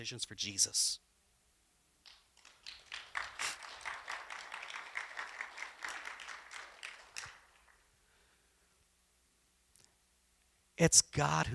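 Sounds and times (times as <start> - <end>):
speech: 0.0 - 1.1, 10.8 - 11.5
crowd applauding: 2.1 - 7.9.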